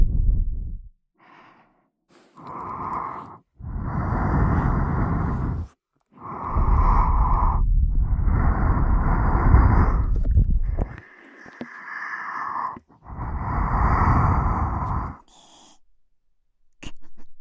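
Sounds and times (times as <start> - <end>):
ear-eating breathy mouth sounds: 2.2 - 15.8.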